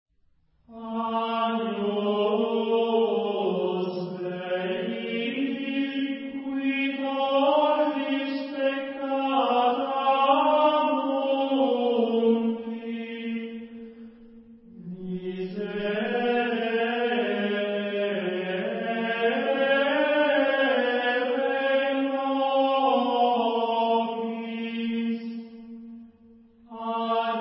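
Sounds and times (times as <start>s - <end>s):
Gregorian chant: 0.7s - 27.4s.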